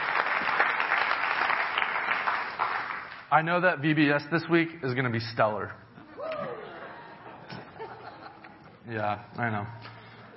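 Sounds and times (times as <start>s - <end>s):
audience round of applause: 0.0s - 3.3s
speech: 3.3s - 5.8s, 8.9s - 9.9s
laughter: 6.4s - 8.8s.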